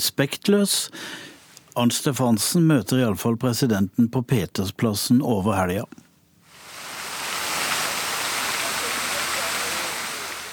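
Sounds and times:
speech: 0.0s - 6.0s
fountain splashing in St. Peter's Square: 6.5s - 10.5s.

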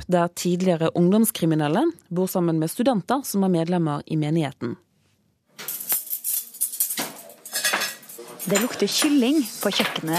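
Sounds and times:
speech: 0.0s - 4.8s, 8.4s - 10.1s
kitchen dishes and cutlery clattering: 5.6s - 10.1s.

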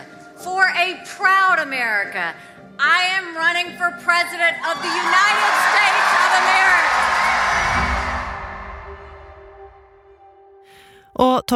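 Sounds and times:
speech: 0.9s - 7.2s
crowd stomping: 4.7s - 10.0s.

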